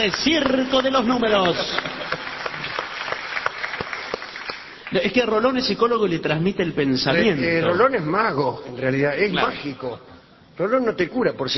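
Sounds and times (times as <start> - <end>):
speech: 0.0 - 1.9, 4.9 - 11.5
audience applause at a stage show: 0.0 - 5.3.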